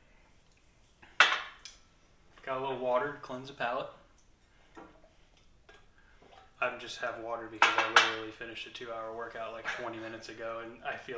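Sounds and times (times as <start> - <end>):
speech: 2.5 - 4.0, 6.6 - 11.1
glass being set down, clinking: 7.6 - 8.2.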